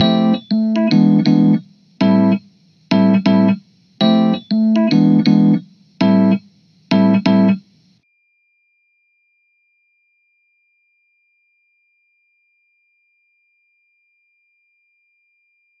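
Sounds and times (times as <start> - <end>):
electric piano through a dry amp: 0.0 - 7.6.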